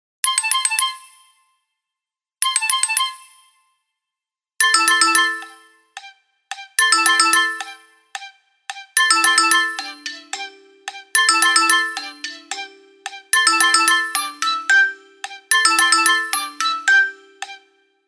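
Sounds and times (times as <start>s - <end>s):
ringtone melody: 2.4s - 3.6s, 4.6s - 17.8s.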